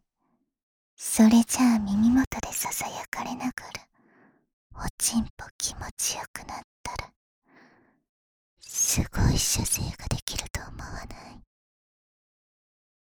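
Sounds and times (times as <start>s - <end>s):
whispering in the ear: 1.0s - 3.9s, 4.7s - 7.1s, 8.6s - 11.5s.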